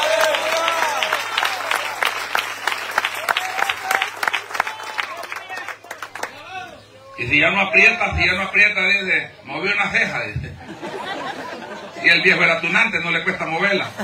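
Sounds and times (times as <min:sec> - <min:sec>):
audience applause: 0:00.0 - 0:06.6
speech: 0:07.3 - 0:10.8, 0:12.0 - 0:14.0
laughter: 0:10.4 - 0:12.4, 0:13.8 - 0:14.0.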